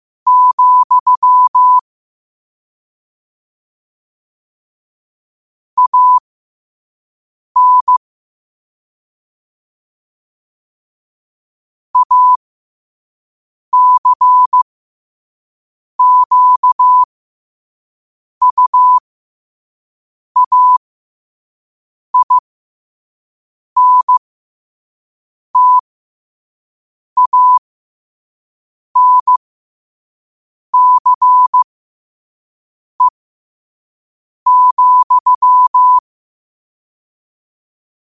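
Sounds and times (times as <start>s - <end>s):
morse code at 5 wpm: 0.3s - 1.8s, 5.8s - 6.2s, 7.6s - 8.0s, 12.0s - 12.4s, 13.8s - 14.6s, 16.0s - 17.1s, 18.4s - 19.0s, 20.4s - 20.8s, 22.2s - 22.4s, 23.8s - 24.2s, 25.6s - 25.8s, 27.2s - 27.6s, 29.0s - 29.4s, 30.8s - 31.6s, 34.5s - 36.0s.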